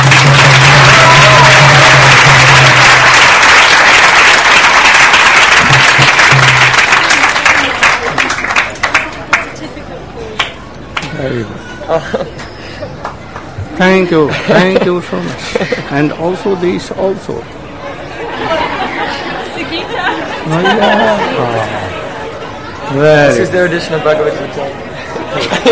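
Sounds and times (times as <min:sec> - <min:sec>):
audience applause: 0:00.0 - 0:09.6
laughter: 0:11.7 - 0:13.0, 0:14.2 - 0:16.1, 0:17.9 - 0:22.6, 0:25.0 - 0:25.7
speech: 0:11.9 - 0:12.3, 0:13.8 - 0:17.6, 0:20.4 - 0:22.0, 0:22.9 - 0:25.7.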